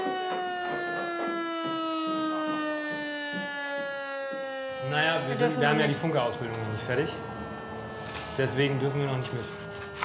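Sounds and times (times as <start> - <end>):
faint rhythmic thumps: 0.0 - 4.8
civil defense siren wailing during a test alarm: 0.0 - 10.0
speech: 4.9 - 7.4, 8.4 - 9.6.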